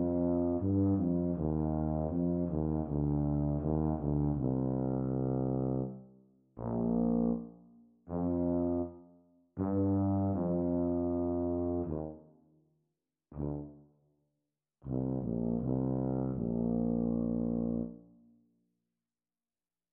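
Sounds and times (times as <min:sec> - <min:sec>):
B-flat tuba duet: 0:00.0 - 0:06.0, 0:06.6 - 0:12.4, 0:13.3 - 0:13.8, 0:14.9 - 0:18.2.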